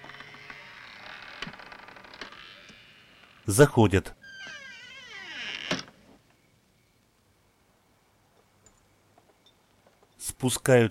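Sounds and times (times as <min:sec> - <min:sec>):
front door being opened, creaking: 0:00.0 - 0:06.2
speech: 0:03.5 - 0:04.2, 0:10.4 - 0:10.8.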